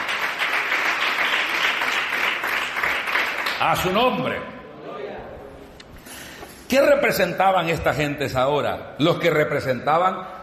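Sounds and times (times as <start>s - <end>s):
audience applauding: 0.0s - 4.0s
speech: 3.6s - 4.6s, 6.7s - 10.4s.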